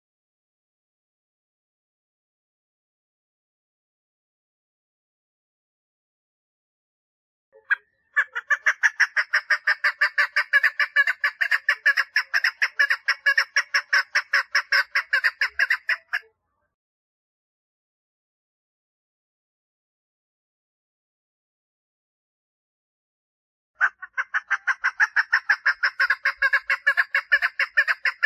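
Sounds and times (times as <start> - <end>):
partridge calling: 7.6 - 16.2, 23.8 - 28.2.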